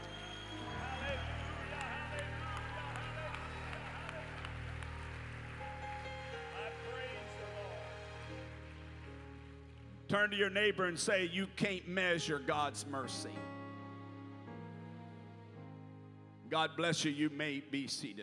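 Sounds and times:
crowd shouting and cheering: 0.0 - 9.3
audience clapping: 0.0 - 10.1
speech: 10.1 - 13.5, 16.5 - 18.2.

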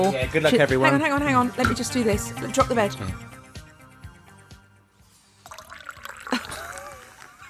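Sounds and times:
speech: 0.0 - 3.3
soft music: 0.0 - 7.4
champagne being poured into a glass: 5.4 - 7.1.

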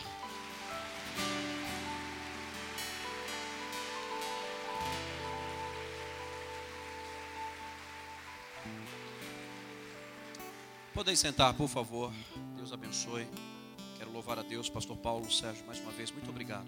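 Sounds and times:
large crowd applauding: 0.0 - 11.7
sustained chords from a keyboard or organ: 0.0 - 13.3
speech: 11.0 - 16.6.

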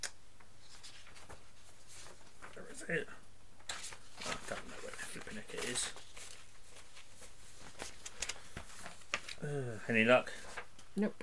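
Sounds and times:
paper shuffling: 0.6 - 2.8, 3.6 - 9.5, 10.3 - 10.8
speech: 2.8 - 3.2, 4.5 - 6.0, 9.4 - 11.2.

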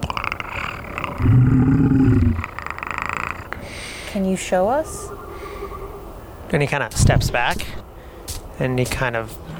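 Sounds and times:
person imitating a panther's growling purr: 0.0 - 6.5
chatter: 0.0 - 9.4
speech: 1.2 - 2.5, 4.1 - 5.3, 6.5 - 7.8, 8.6 - 9.5.

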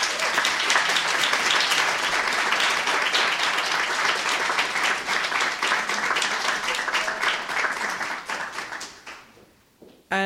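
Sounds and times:
audience applause: 0.0 - 9.4
person speaking: 10.1 - 10.2.

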